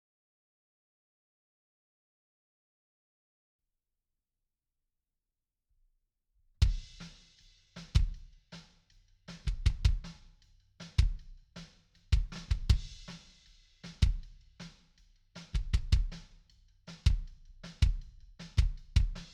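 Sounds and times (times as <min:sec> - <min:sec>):
kick drum: 0:06.6 - 0:07.0, 0:07.9 - 0:08.3, 0:09.4 - 0:10.2, 0:11.0 - 0:11.3, 0:12.1 - 0:13.0, 0:14.0 - 0:14.3, 0:15.6 - 0:16.2, 0:17.0 - 0:19.3.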